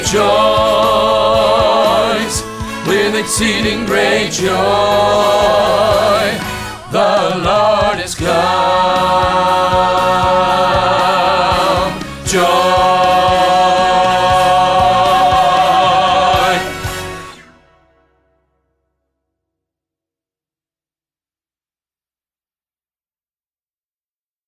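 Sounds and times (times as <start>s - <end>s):
bass rehearsal track: 0.0s - 19.2s.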